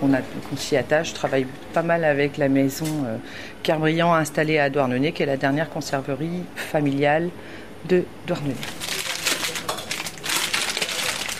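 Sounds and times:
speech: 0.0 - 8.9
packaging rustling as products are unpacked in a cheese shop: 8.6 - 11.3.

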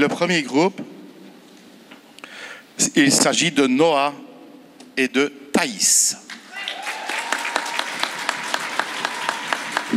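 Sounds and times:
speech: 0.0 - 0.9, 2.8 - 4.3, 5.0 - 6.8
audience applause: 6.5 - 9.9.

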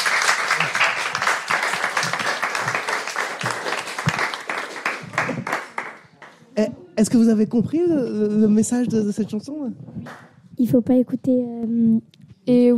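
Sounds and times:
audience applause: 0.0 - 6.4
speech: 6.6 - 12.7.

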